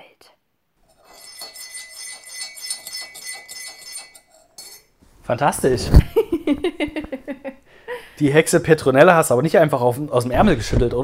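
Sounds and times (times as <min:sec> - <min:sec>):
sleigh bells jingling as sleigh departs: 0:00.9 - 0:04.9
speech: 0:05.3 - 0:07.0, 0:08.2 - 0:11.0
laughter: 0:06.0 - 0:07.6.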